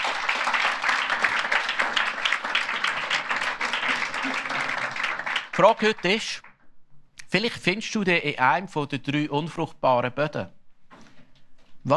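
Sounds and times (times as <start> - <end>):
audience applause: 0.0 - 6.5
speech: 5.6 - 6.5, 7.3 - 10.6.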